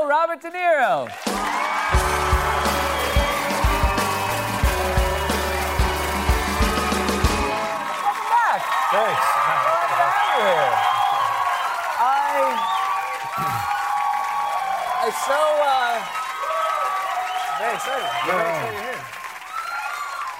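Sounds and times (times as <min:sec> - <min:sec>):
speech: 0:00.1 - 0:02.6, 0:08.9 - 0:11.0, 0:12.4 - 0:13.7, 0:15.0 - 0:16.2, 0:17.6 - 0:19.2
studio audience applauding: 0:00.6 - 0:20.3.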